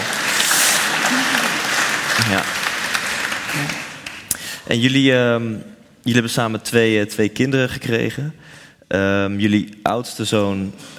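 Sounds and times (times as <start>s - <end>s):
audience applause: 0.0s - 4.3s
speech: 2.3s - 2.6s, 4.7s - 10.9s.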